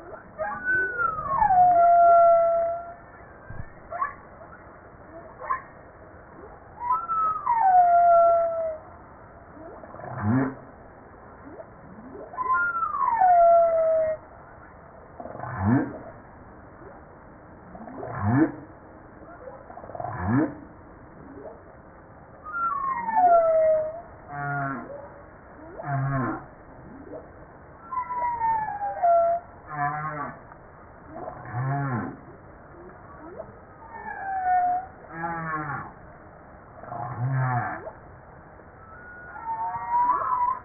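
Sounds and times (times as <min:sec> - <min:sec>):
humpback whale song: 0:00.0 - 0:17.0, 0:17.6 - 0:40.6.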